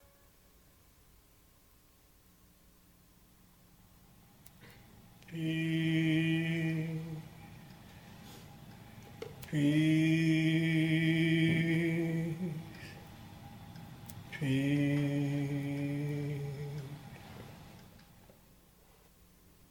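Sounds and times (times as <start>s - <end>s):
peace chant: 5.2s - 7.6s, 9.4s - 13.1s, 14.1s - 17.6s.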